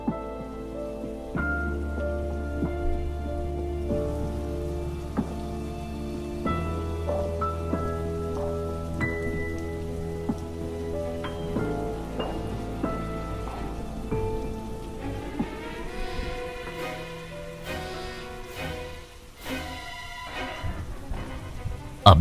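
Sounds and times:
heavy rain falling: 0:00.0 - 0:22.1.

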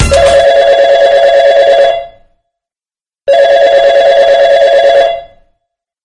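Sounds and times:
telephone ringing: 0:00.1 - 0:02.3, 0:03.3 - 0:05.5.

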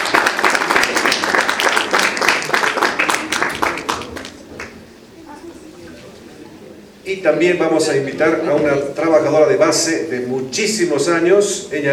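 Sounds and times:
audience applause welcoming a panel guest: 0:00.0 - 0:04.8
speech: 0:07.2 - 0:11.9.

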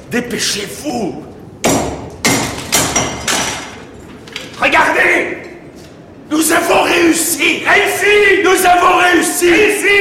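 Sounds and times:
speech: 0:00.1 - 0:01.4, 0:04.6 - 0:05.4, 0:06.3 - 0:09.9
large hammer breaking open a sealed crucible: 0:01.6 - 0:03.8.

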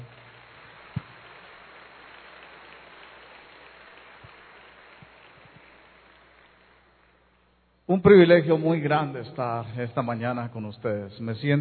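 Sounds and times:
audience applauding: 0:00.0 - 0:07.2
speech: 0:07.9 - 0:11.6.

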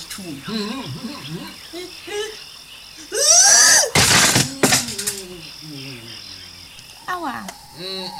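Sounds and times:
squeaky, croaking vocal noises: 0:00.0 - 0:08.1
speech: 0:00.2 - 0:02.4, 0:07.1 - 0:08.1
person falling from a tree branch onto the ground: 0:03.9 - 0:05.1.

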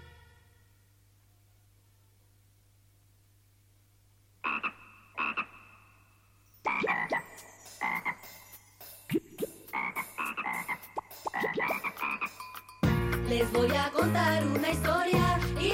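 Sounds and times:
frog croaking: 0:04.4 - 0:08.5, 0:09.1 - 0:12.5
speech: 0:13.3 - 0:15.7.

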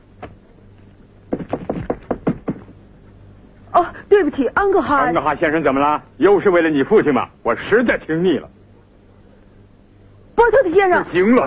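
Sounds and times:
knocking on a door: 0:01.3 - 0:02.8
speech: 0:04.4 - 0:08.5, 0:10.5 - 0:11.4.

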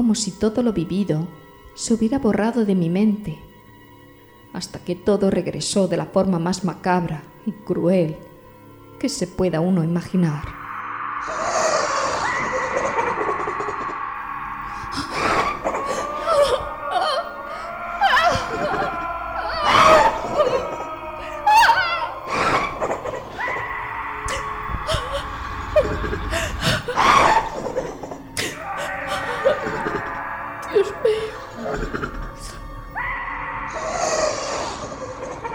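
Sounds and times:
speech: 0:00.0 - 0:03.5, 0:04.5 - 0:08.3, 0:09.0 - 0:10.6
screams echoing off huge walls: 0:10.6 - 0:35.5
cackling laughter: 0:12.0 - 0:14.1, 0:14.9 - 0:23.7, 0:24.3 - 0:32.6, 0:34.6 - 0:35.5.

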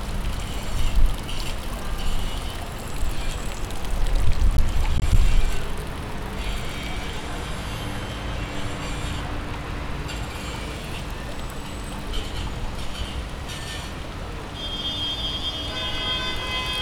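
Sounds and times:
roadworks: 0:00.0 - 0:16.8
car horns: 0:14.6 - 0:16.8.

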